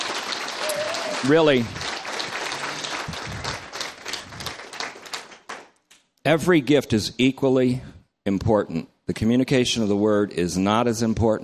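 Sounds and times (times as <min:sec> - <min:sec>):
audience applause at a church gathering: 0:00.0 - 0:05.7
speech: 0:01.2 - 0:01.8, 0:06.3 - 0:11.4.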